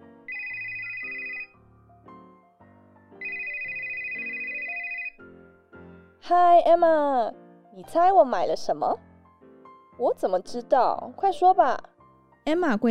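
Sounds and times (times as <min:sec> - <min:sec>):
mobile phone ringtone for an incoming call: 0:00.2 - 0:01.6, 0:03.2 - 0:05.3
speech: 0:06.3 - 0:09.0, 0:10.0 - 0:12.8.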